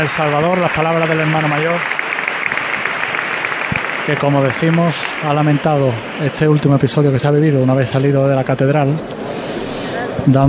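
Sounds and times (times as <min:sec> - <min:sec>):
speech: 0:00.0 - 0:02.0, 0:04.0 - 0:09.5, 0:10.2 - 0:10.4
brotherhood members applauding: 0:00.0 - 0:09.3.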